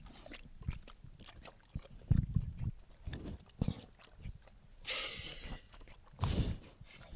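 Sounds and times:
animal lapping and slurping water: 0.0 - 7.1
breathy snuffs: 4.8 - 7.1.

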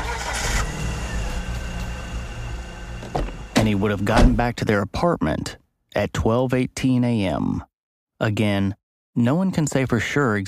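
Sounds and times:
car engine starting: 0.0 - 4.5
speech: 3.6 - 10.4.

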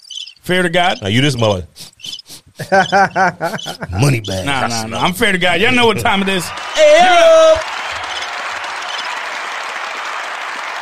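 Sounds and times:
speech: 0.5 - 1.9, 2.6 - 7.7
laughter: 2.5 - 10.8
audience applause: 4.5 - 10.8.

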